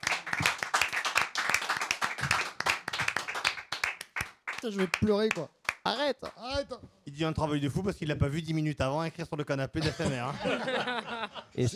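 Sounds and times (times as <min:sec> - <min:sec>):
audience applause: 0:00.0 - 0:05.0
speech: 0:04.6 - 0:11.7
laughter: 0:09.8 - 0:11.7.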